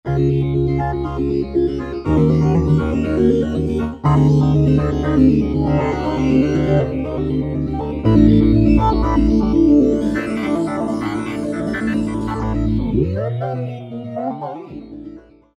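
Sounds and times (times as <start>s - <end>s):
Roland V-Synth synthesizer: 0.1s - 15.5s.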